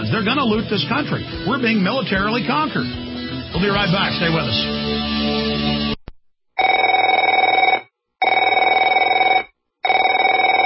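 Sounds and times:
speech: 0.1 - 5.9
telephone ringing: 6.6 - 10.6.

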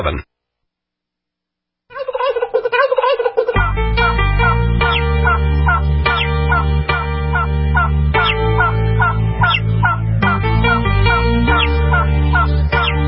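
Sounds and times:
turkey gobbling: 1.9 - 3.8, 4.8 - 10.0, 11.5 - 13.0
music track with heavy bass beat: 3.6 - 13.0.

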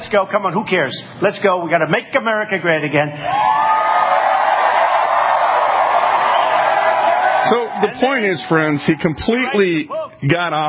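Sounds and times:
speech: 0.1 - 3.7, 7.4 - 10.6
crowd shouting and cheering: 3.2 - 10.2.

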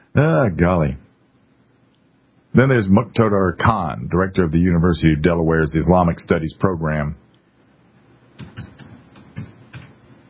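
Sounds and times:
speech: 0.2 - 1.0, 2.6 - 7.2
typing on a computer keyboard: 8.4 - 10.2.

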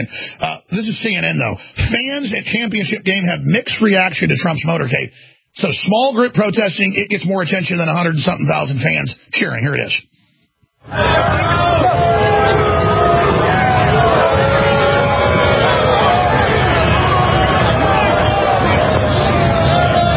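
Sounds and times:
speech: 0.0 - 10.2, 10.8 - 12.1
crowd booing: 10.8 - 20.1.

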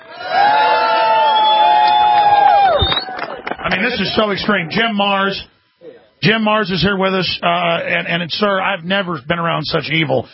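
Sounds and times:
crowd applause: 0.0 - 4.7
speech: 3.8 - 5.5, 6.2 - 10.3.

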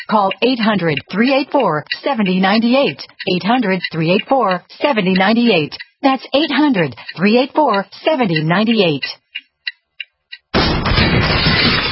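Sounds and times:
speech: 0.1 - 9.2
door of a dark house being kicked in by a burglar: 10.5 - 11.9.

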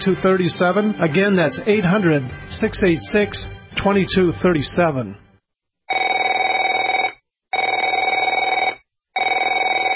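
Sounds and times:
speech: 0.0 - 5.2
telephone ringing with electronic trill: 5.9 - 9.9.

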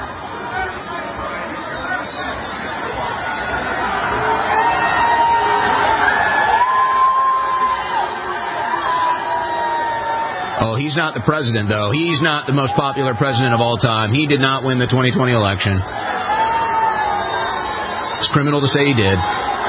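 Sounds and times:
large stadium crowd roaring and cheering: 0.0 - 19.6
high whoops: 4.5 - 10.5, 16.0 - 18.2
speech: 10.9 - 16.1, 18.3 - 19.6.

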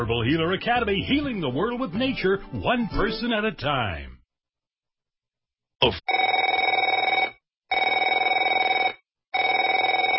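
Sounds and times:
speech: 0.0 - 4.2, 5.8 - 6.2
telephone ringing with electronic trill: 6.1 - 10.1.

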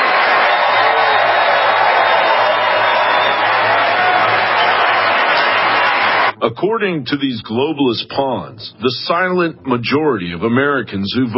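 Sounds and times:
round of applause from a large crowd: 0.0 - 6.3
speech: 6.4 - 11.3.

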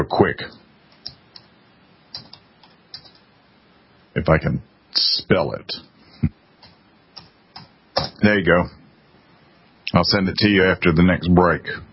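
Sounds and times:
speech: 0.0 - 0.6, 4.2 - 6.4, 8.2 - 8.8, 9.9 - 11.9
computer keyboard typing: 0.9 - 1.5, 2.1 - 3.3, 6.6 - 8.2.

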